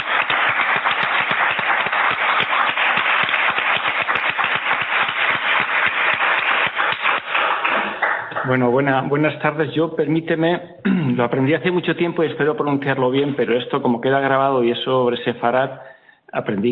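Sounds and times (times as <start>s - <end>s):
audience applause: 0.0s - 8.7s
speech: 8.5s - 16.7s.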